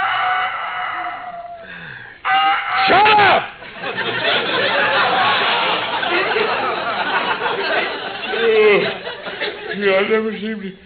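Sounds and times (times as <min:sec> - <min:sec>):
rooster crowing on a farm: 0:00.0 - 0:03.0
laughter: 0:02.9 - 0:10.7
speech: 0:09.9 - 0:10.8.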